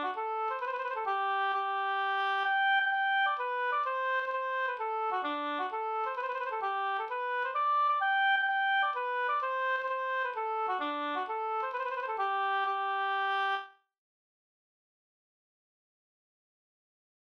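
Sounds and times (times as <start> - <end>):
hambo polska folk dance tune: 0.0 - 13.6.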